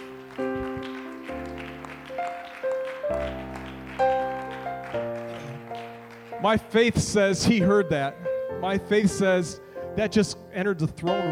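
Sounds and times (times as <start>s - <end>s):
audience clapping hands in praise: 0.0s - 7.3s
speech: 6.4s - 11.2s.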